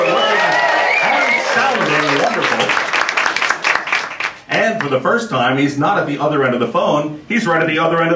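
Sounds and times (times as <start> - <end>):
crowd voices cheering: 0.0 - 4.4
live crowd applauding: 0.0 - 4.9
speech: 4.8 - 8.1.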